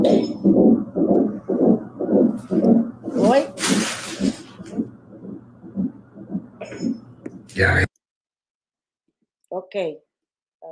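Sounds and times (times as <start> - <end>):
heartbeat: 0.0 - 7.6
speech: 9.7 - 10.7.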